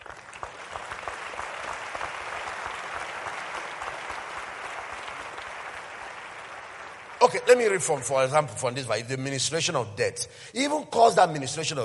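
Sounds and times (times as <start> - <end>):
audience clapping: 0.0 - 8.4
speech: 7.2 - 11.8.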